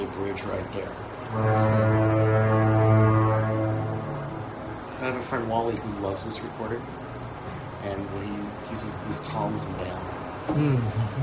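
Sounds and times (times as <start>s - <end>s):
speech: 0.4s - 2.5s, 5.0s - 7.1s, 7.8s - 11.2s
distant foghorn: 1.2s - 5.2s.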